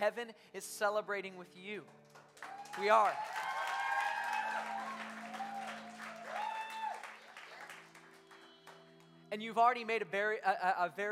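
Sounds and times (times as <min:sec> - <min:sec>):
speech: 0:00.0 - 0:03.5, 0:09.3 - 0:11.1
audience applause: 0:02.0 - 0:09.2.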